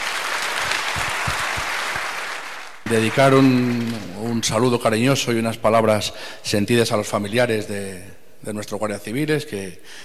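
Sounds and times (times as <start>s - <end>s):
audience applause for the Guardia Civil of Guijuelo at a town ceremony: 0.0s - 4.3s
speech: 2.9s - 10.0s.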